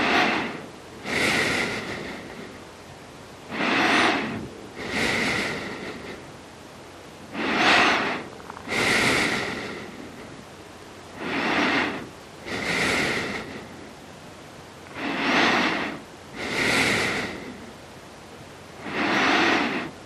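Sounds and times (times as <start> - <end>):
person breathing: 0.0 - 2.7, 3.5 - 6.4, 7.3 - 10.4, 11.1 - 14.1, 14.8 - 17.8, 18.8 - 20.0
low steady hiss: 0.0 - 20.0.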